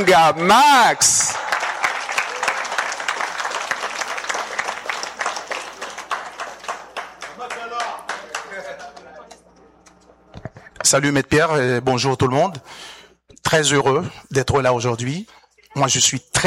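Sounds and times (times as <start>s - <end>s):
speech: 0.0s - 1.4s, 10.9s - 16.4s
audience applause: 0.6s - 9.1s.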